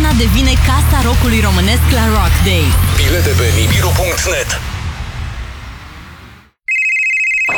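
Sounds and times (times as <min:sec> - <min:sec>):
speech: 0:00.2 - 0:04.7
telephone ringing: 0:06.7 - 0:07.5.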